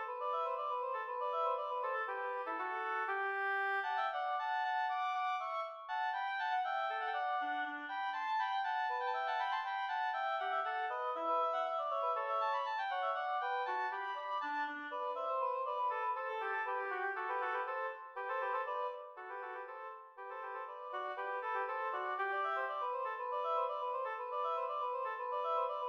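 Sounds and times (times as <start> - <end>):
duet of two oboes: 0.0 - 25.8.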